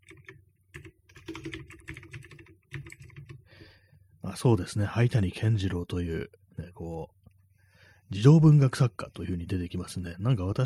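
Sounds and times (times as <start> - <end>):
rapid typing on a computer keyboard: 0.0 - 3.4
speech: 4.4 - 7.2, 8.1 - 10.6.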